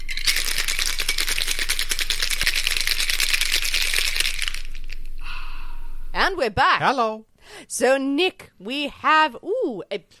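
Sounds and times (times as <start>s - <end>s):
ice clattering in a cocktail shaker: 0.0s - 4.9s
cocktail shaker rattling: 0.0s - 5.2s
speech: 6.3s - 10.1s.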